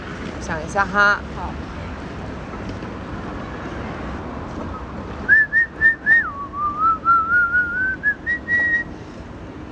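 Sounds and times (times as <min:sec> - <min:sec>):
speech: 0:00.5 - 0:01.8
whistling a pop song melody: 0:05.3 - 0:08.9.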